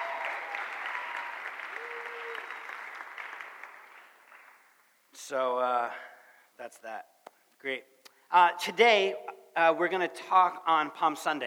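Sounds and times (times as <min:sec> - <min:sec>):
audience round of applause: 0:00.0 - 0:04.8
speech: 0:05.3 - 0:11.4.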